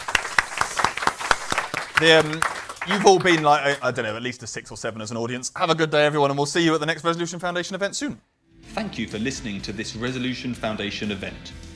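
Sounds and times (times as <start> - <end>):
audience applause thanking a panel at a policy event: 0.0 - 4.0
speech: 2.0 - 11.6.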